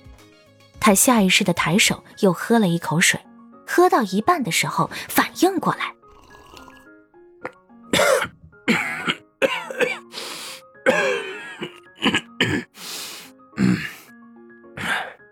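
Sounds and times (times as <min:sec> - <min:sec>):
speech: 0:00.8 - 0:06.0
violent coughing: 0:07.9 - 0:10.1, 0:10.8 - 0:12.8, 0:13.6 - 0:14.0, 0:14.8 - 0:15.2.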